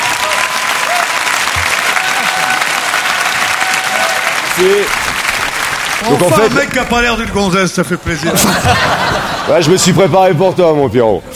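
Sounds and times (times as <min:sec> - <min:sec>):
audience applauding: 0:00.0 - 0:07.0
speech: 0:04.6 - 0:05.1, 0:06.0 - 0:11.3
laughter: 0:07.8 - 0:10.6.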